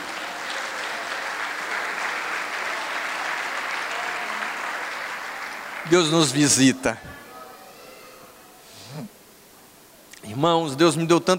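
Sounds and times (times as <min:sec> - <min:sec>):
audience applause: 0:00.0 - 0:07.0
speech: 0:05.9 - 0:07.2, 0:10.4 - 0:11.3.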